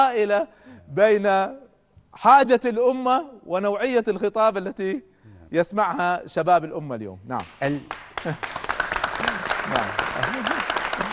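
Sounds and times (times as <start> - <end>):
speech: 0.0 - 1.6, 2.2 - 8.6, 9.7 - 10.8
audience applause: 7.9 - 11.1.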